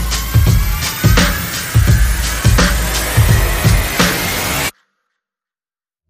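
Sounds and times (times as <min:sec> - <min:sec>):
percussion and effects: 0:00.0 - 0:04.7.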